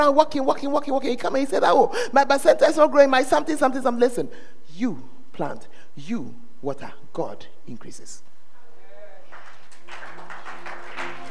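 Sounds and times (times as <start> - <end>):
speech: 0.0 - 8.3
weak audience clapping: 9.3 - 11.2.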